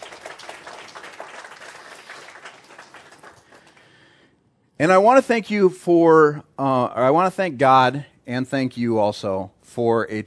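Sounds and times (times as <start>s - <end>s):
church congregation applauding new elder and deacon: 0.0s - 4.2s
speech: 4.8s - 10.2s.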